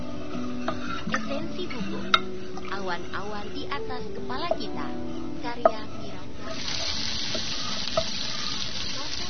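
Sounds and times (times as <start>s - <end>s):
food sizzling and frying in a pan during cooking: 0.2s - 3.6s, 6.0s - 9.2s
speech: 2.9s - 5.9s.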